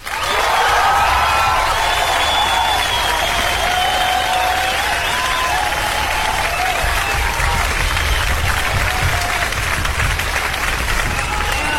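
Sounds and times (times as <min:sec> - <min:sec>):
applause: 0:00.0 - 0:11.7.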